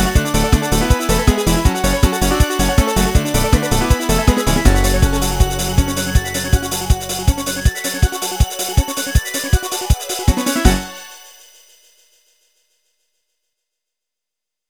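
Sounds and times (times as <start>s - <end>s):
techno music: 0.0s - 11.2s.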